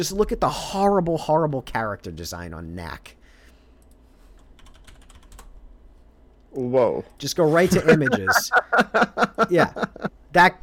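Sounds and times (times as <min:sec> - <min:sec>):
speech: 0:00.0 - 0:03.2, 0:06.5 - 0:10.6
typing on a computer keyboard: 0:03.8 - 0:05.6
laughter: 0:07.6 - 0:10.1.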